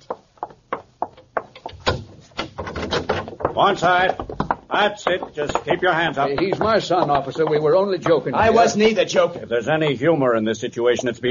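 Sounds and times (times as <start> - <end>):
door opening: 1.2 - 4.4
speech: 3.6 - 11.2.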